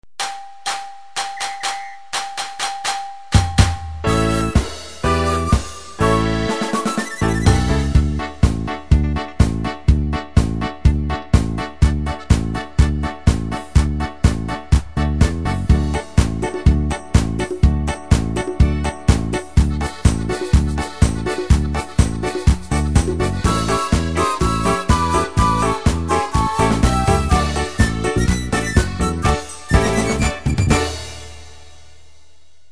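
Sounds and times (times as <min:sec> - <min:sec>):
KORG keyboard march foxtrot style: 0:01.0 - 0:31.6.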